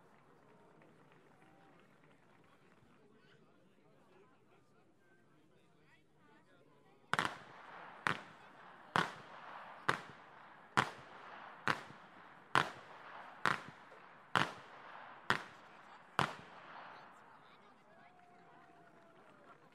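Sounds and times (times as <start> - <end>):
whip cracking in Flachgau: 7.2 - 17.1.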